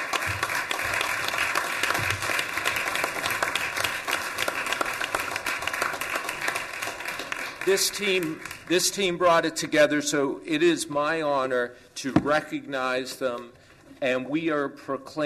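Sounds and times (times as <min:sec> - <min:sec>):
crowd applauding: 0:00.0 - 0:08.8
speech: 0:07.7 - 0:15.2.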